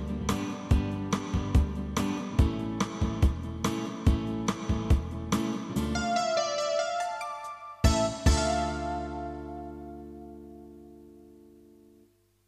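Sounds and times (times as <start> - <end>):
karaoke backing track: 0.0 - 9.8.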